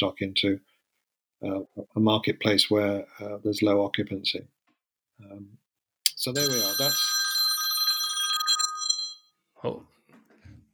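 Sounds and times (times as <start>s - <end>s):
speech: 0.0s - 0.7s, 1.4s - 4.6s, 5.2s - 5.6s, 6.2s - 7.2s, 9.6s - 9.9s
phone ringing: 6.2s - 9.3s.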